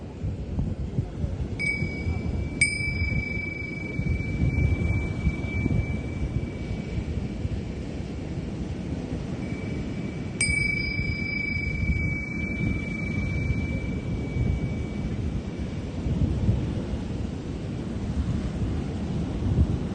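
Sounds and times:
steady dense low rumble: 0.2 - 19.8
singing bowl strikes: 1.6 - 7.4, 9.4 - 15.6.

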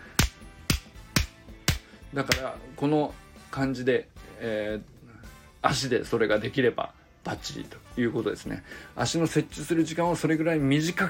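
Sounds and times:
short hand claps: 0.1 - 2.5
speech: 2.1 - 4.9, 5.6 - 11.0.

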